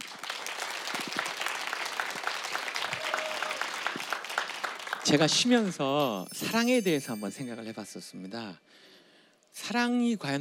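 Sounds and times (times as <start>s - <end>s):
audience applause: 0.0s - 5.7s
speech: 5.0s - 8.9s, 9.6s - 10.3s.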